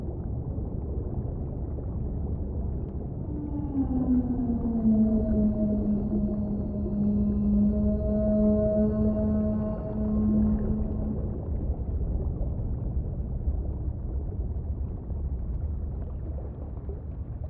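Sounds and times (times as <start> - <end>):
constant underwater rumble: 0.0 - 17.4
whale song: 0.2 - 13.2.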